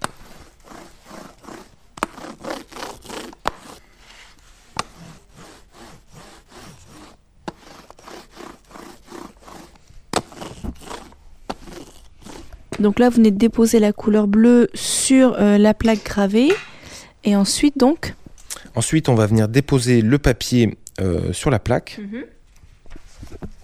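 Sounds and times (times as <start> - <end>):
printing press carriage rolling with rasping scrapes: 0.0 - 12.7
speech: 12.8 - 18.2, 18.8 - 22.4.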